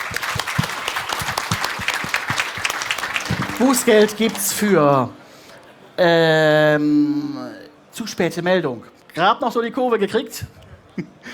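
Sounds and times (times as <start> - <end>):
applause from a group: 0.0 - 5.2
speech: 3.6 - 5.2, 6.0 - 11.2.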